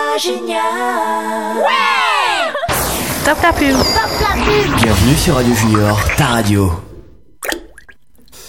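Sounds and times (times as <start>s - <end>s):
speech: 0.2s - 2.0s, 3.2s - 6.9s
steady sustained tones: 2.7s - 7.3s
water dripping from a small leak above a sink: 7.3s - 8.4s.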